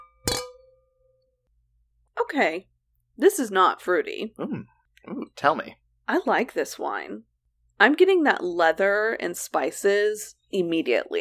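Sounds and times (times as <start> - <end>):
glasses clinking in a toast: 0.0 - 0.8
speech: 2.3 - 11.2.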